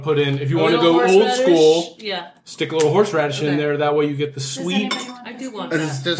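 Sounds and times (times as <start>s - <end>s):
speech: 0.0s - 6.1s
cutlery clinking as Hillel sandwiches of matzah and horoset are eaten: 4.7s - 5.2s.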